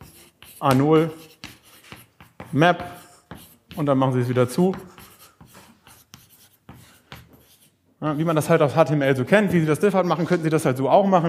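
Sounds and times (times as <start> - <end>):
chalk or marker writing on a board during a coding lesson: 0.0 - 8.6
speech: 0.6 - 1.3, 2.5 - 3.0, 3.8 - 4.9, 8.0 - 11.2.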